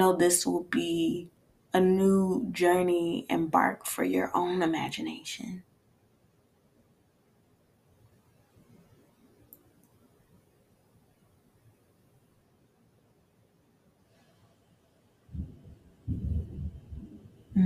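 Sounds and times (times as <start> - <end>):
speech: 0.0 - 5.7
thunder rumbling during a storm: 15.3 - 17.6.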